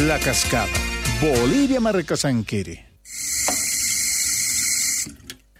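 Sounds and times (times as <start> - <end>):
speech: 0.1 - 2.9
faucet running: 3.4 - 4.0.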